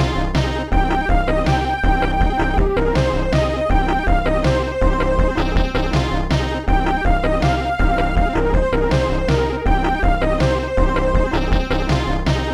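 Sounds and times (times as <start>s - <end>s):
arpeggio: 0.1s - 12.4s.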